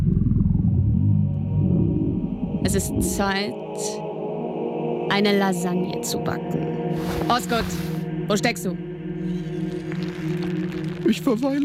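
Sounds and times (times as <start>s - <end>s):
stomach growling: 0.0s - 3.1s, 9.2s - 11.6s
speech: 2.7s - 4.1s, 5.1s - 9.4s, 11.0s - 11.6s.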